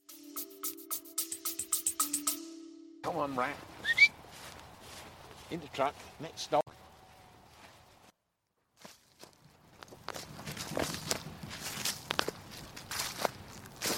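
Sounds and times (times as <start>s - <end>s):
speech: 3.0s - 3.7s, 5.5s - 6.6s
footsteps crunching through woodland: 3.2s - 13.9s.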